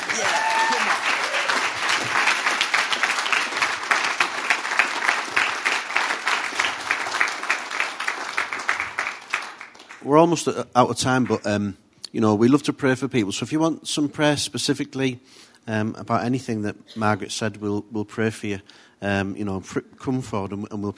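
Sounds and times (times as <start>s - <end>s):
crowd applause: 0.0s - 10.0s
speech: 10.1s - 20.9s.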